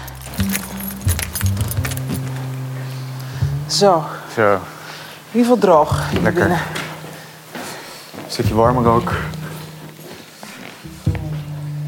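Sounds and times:
keys jangling: 0.0s - 2.8s
door opening: 0.0s - 3.2s
low steady hum: 0.0s - 10.1s
speech: 3.7s - 4.7s, 5.3s - 6.8s, 8.4s - 9.4s.

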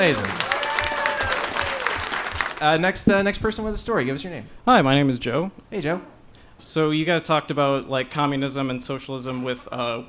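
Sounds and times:
speech: 0.0s - 0.4s, 2.6s - 10.0s
audience applause: 0.0s - 2.8s.

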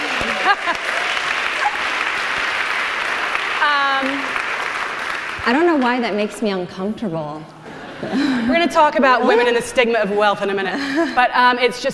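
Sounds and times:
laughter: 0.0s - 1.9s, 7.6s - 9.7s
audience clapping: 0.0s - 6.1s
speech: 5.5s - 11.9s.

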